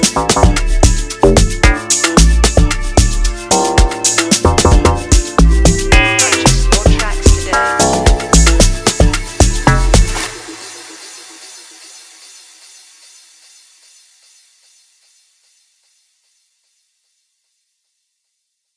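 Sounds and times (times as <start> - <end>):
beat: 0.0 - 10.8.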